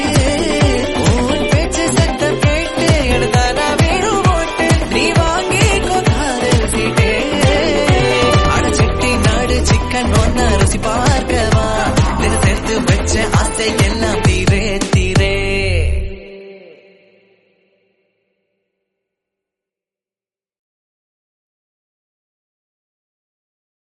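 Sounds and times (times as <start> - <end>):
instrumental music: 0.0 - 16.2.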